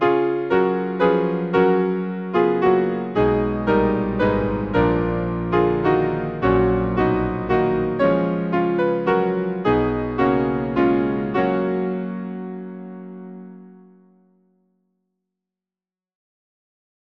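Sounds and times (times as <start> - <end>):
hymn played on piano in Moscow: 0.0 - 14.3.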